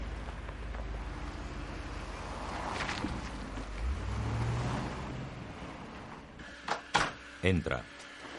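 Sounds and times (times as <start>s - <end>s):
car pulling up engine rumble: 0.0s - 6.4s
speech: 7.4s - 8.0s.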